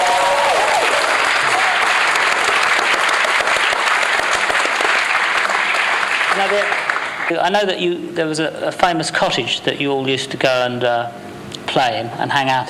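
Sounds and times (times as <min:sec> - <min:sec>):
audience applause: 0:00.0 - 0:07.3
speech: 0:06.5 - 0:12.6.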